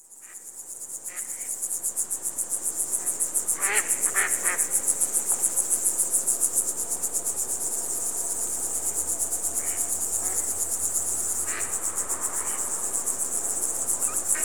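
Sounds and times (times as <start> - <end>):
cricket chirping: 0.0 - 14.4.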